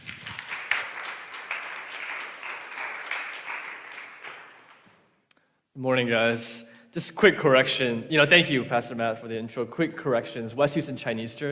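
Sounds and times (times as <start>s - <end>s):
audience applause at a church service welcoming a youth pastor: 0.0s - 5.0s
speech: 5.8s - 11.5s.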